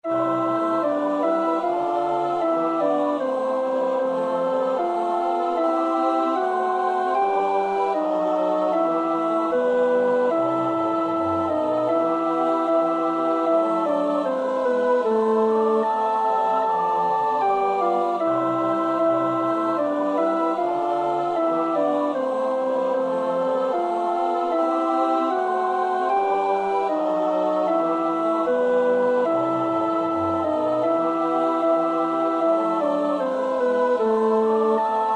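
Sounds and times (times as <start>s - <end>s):
alto choir part practice singing: 0.0s - 35.1s.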